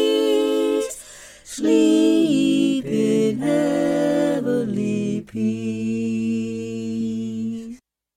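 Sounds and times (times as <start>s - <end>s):
choir singing carols in harmony: 0.0s - 7.8s.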